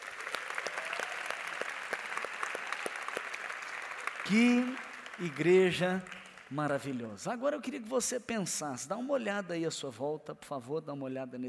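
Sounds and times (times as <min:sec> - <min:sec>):
church audience applause: 0:00.0 - 0:07.0
speech: 0:04.2 - 0:11.4.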